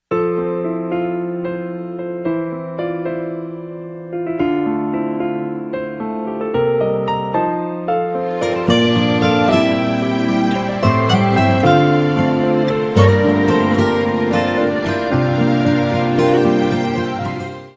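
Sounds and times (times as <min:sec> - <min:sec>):
romantic beautiful SMS melody: 0:00.0 - 0:17.7.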